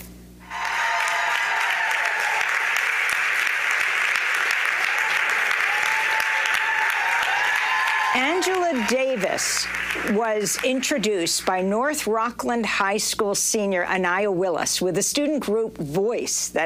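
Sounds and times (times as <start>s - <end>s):
audience applause in a standing ovation: 0.5s - 11.2s
speech: 8.4s - 16.6s.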